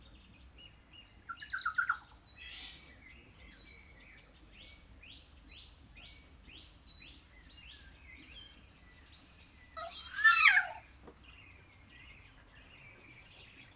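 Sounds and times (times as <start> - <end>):
captive kea giving a harsh screech in a zoo at Jászberény: 9.8 - 10.8.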